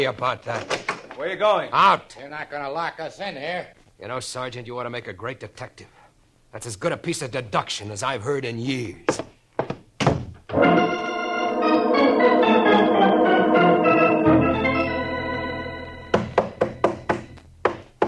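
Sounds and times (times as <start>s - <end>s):
speech: 0.0s - 9.8s
heavy thumps on a locked door: 9.1s - 10.6s, 16.1s - 18.0s
sustained swelling musical chord: 10.6s - 16.4s
loud sharp knocks on a locked door: 16.1s - 18.0s.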